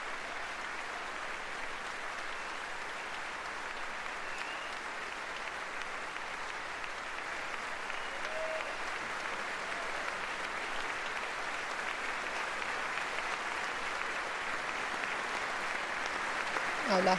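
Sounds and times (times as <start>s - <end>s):
members of Congress applauding a World War II veteran while standing: 0.0s - 17.1s.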